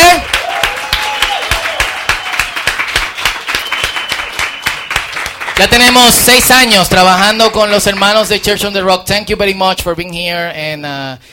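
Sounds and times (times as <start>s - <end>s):
raised voices and faint cheers: 0.0s - 2.8s
audience applause: 0.0s - 8.6s
speech: 5.6s - 11.3s.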